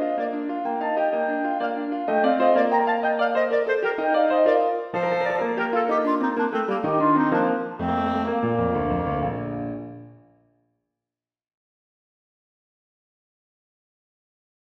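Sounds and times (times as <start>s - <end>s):
clarinet and piano sonata movement: 0.0s - 10.3s.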